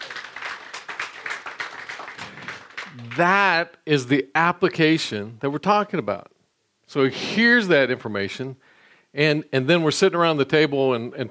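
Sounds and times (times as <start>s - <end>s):
applause: 0.0s - 3.4s
speech: 3.2s - 11.2s.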